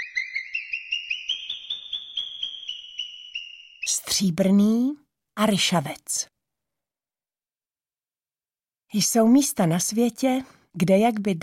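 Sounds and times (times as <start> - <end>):
alarmed marmot whistling: 0.0 - 3.9
speech: 4.0 - 6.3, 8.9 - 11.4.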